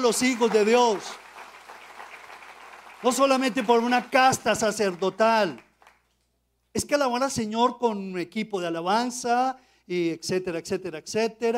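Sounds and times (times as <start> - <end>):
speech: 0.0 - 1.2, 3.0 - 5.6, 6.8 - 11.5
audience applause: 0.0 - 6.0.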